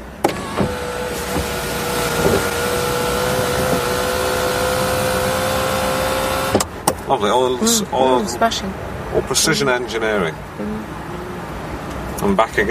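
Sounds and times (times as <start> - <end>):
car servos whirring: 0.2 - 6.7
speech: 7.1 - 11.0, 12.2 - 12.6.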